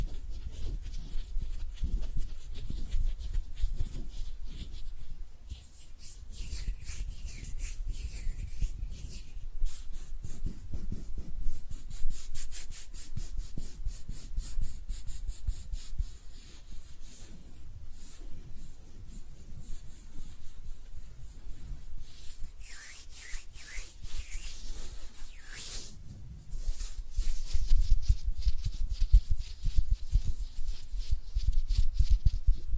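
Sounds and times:
hands rubbing and brushing together: 0.0s - 32.7s.

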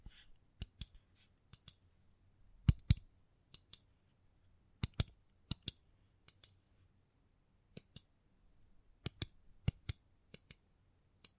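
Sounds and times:
sharp snipping clicks: 0.6s - 1.8s, 2.6s - 3.9s, 4.8s - 6.6s, 9.0s - 10.6s.

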